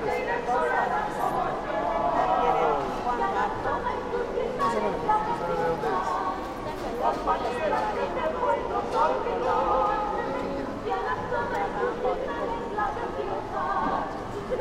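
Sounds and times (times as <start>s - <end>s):
overlapping voices and chatter at San Pedro market food stalls in Cusco: 0.0s - 14.5s.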